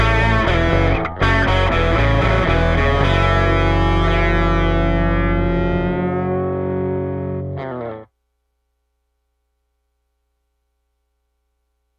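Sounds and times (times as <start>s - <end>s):
rock music without drums: 0.0s - 8.1s.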